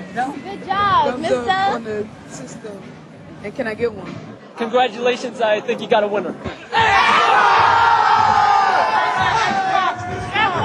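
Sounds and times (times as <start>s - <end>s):
speech: 0.2s - 8.4s
crowd of excited New York gamers cheering at an Xbox launch event: 6.7s - 10.6s.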